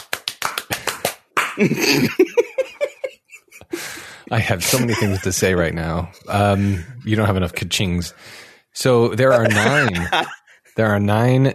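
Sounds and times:
hands clapping: 0:00.0 - 0:02.0
speech: 0:01.6 - 0:02.7, 0:04.3 - 0:11.5
laughter: 0:01.6 - 0:07.0, 0:09.2 - 0:10.6.

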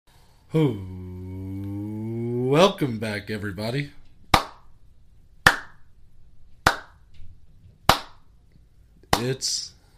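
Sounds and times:
speech: 0:00.5 - 0:01.1, 0:02.5 - 0:04.0, 0:09.2 - 0:09.8
slow clap: 0:04.3 - 0:04.7, 0:05.4 - 0:05.8, 0:06.6 - 0:07.0, 0:07.9 - 0:08.3.

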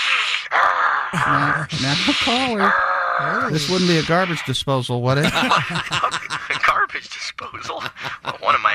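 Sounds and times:
person imitating a bear's growl: 0:00.1 - 0:04.2
speech: 0:01.2 - 0:06.2, 0:07.4 - 0:08.7
laughter: 0:05.1 - 0:08.7.

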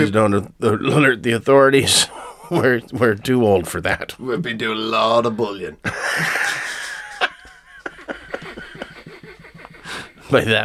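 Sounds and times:
speech: 0:00.0 - 0:06.6, 0:10.3 - 0:10.6
laughter: 0:05.8 - 0:10.3
sniffing and wheezing from head cold: 0:09.2 - 0:10.3.

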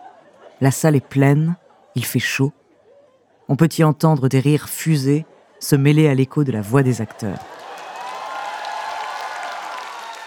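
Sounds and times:
speech: 0:00.6 - 0:02.6, 0:03.5 - 0:07.6
theatre audience applauding: 0:07.0 - 0:10.2.

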